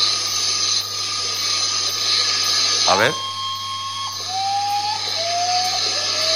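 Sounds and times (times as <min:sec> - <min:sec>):
constant hiss: 0:01.0 - 0:03.6
speech: 0:02.9 - 0:03.3
common potoo (guajojó) mournful call: 0:02.9 - 0:06.3.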